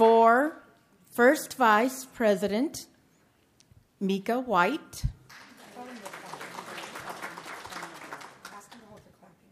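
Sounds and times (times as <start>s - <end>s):
speech: 1.2s - 2.9s, 4.0s - 5.2s
audience clapping: 5.2s - 9.2s.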